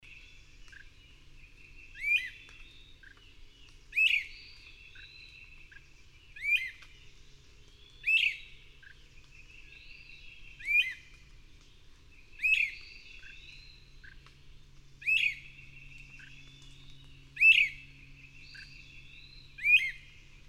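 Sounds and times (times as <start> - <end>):
bird song of high whistled phrases: 1.6 - 3.2, 3.9 - 5.8, 6.4 - 6.9, 7.8 - 11.2, 12.3 - 14.2, 15.0 - 20.2.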